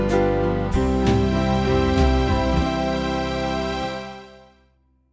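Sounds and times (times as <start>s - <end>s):
small band playing: 0.1s - 4.1s.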